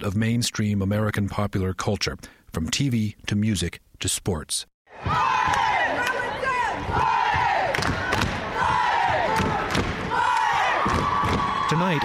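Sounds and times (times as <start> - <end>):
speech: 0.0 - 5.6, 6.9 - 8.0, 11.8 - 12.0
war cries from Crow basketball rooting section: 4.9 - 12.0.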